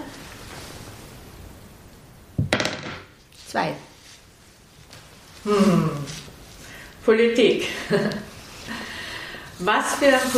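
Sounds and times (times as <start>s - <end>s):
quiet hiss: 0.0s - 10.3s
dice rolling: 2.4s - 3.0s
speech: 3.5s - 3.9s, 5.4s - 6.2s, 7.1s - 8.2s, 9.6s - 10.3s.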